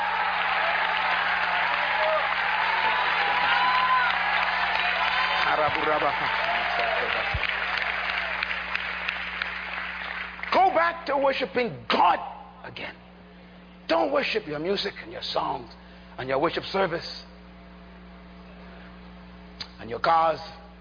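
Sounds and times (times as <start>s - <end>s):
people shouting: 0.0s - 5.4s
audience clapping hands: 0.0s - 10.9s
speech: 5.5s - 7.6s, 10.8s - 13.0s, 13.9s - 17.3s, 19.8s - 20.6s.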